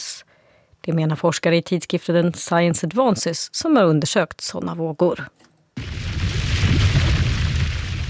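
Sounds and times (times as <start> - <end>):
speech: 0.8 - 5.5
Hunga Tonga volcanic eruption boom: 5.8 - 8.0.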